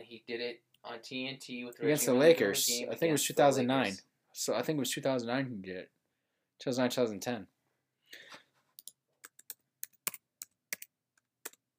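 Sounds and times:
speech: 0.1 - 6.0, 6.6 - 7.5
rapid keystrokes on a computer keyboard typing a search: 8.8 - 11.6.

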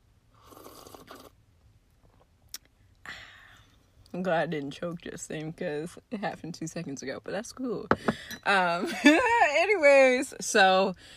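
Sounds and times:
slurping sip of tea: 0.4 - 1.4
speech: 4.1 - 11.1.

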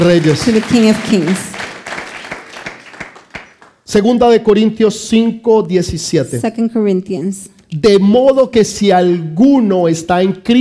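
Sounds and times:
speech: 0.0 - 1.5, 3.9 - 10.5
audience applauding loudly: 0.0 - 3.9.

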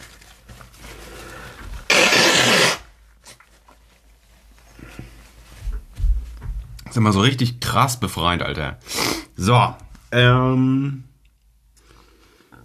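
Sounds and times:
nose blowing: 1.9 - 2.9, 8.9 - 9.3
speech: 6.9 - 11.1.

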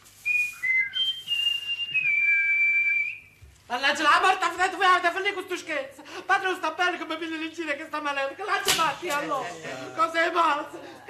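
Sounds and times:
blackbird whistling: 0.3 - 3.3
speech: 3.7 - 11.0.

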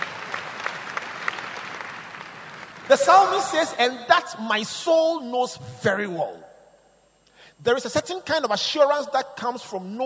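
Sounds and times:
audience clapping: 0.0 - 3.2
speech: 2.9 - 6.5, 7.6 - 10.0.

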